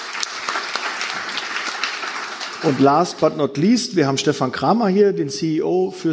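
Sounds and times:
audience applause for a panel guest: 0:00.0 - 0:03.4
speech: 0:02.6 - 0:06.1.

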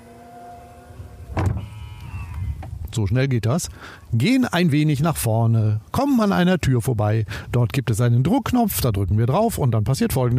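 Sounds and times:
powered car tailgate electric motor hum: 0:00.0 - 0:02.8
powered car tailgate mechanical clunk: 0:00.1 - 0:01.8
speech: 0:02.9 - 0:10.3.

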